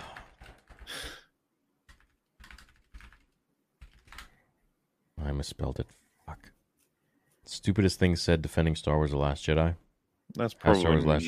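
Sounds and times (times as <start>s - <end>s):
typing on a computer keyboard: 0.0s - 1.0s, 1.8s - 4.4s
speech: 5.4s - 6.5s, 7.5s - 11.2s.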